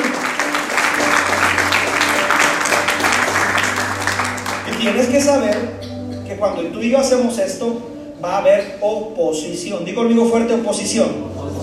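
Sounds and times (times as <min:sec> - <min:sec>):
audience applauding: 0:00.0 - 0:05.7
speech: 0:04.8 - 0:11.3.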